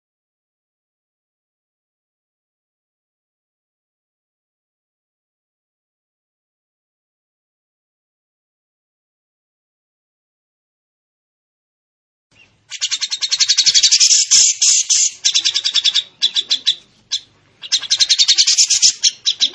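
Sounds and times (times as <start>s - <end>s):
training bird song with rapid high rattling notes and buzzy trills: 12.4s - 19.5s.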